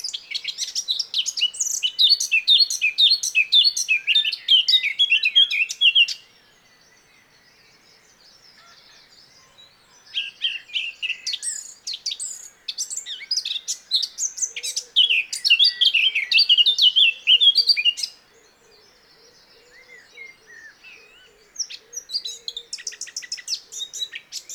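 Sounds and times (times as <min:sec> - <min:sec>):
Eurasian blackcap singing: 0:00.0 - 0:06.3, 0:10.0 - 0:18.2, 0:19.7 - 0:24.5.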